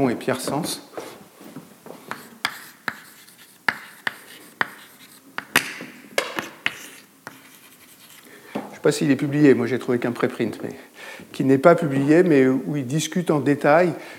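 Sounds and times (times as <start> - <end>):
speech: 0.0 - 1.0, 8.8 - 14.1
drawing on a board during a lecture: 2.0 - 5.5, 6.4 - 8.2.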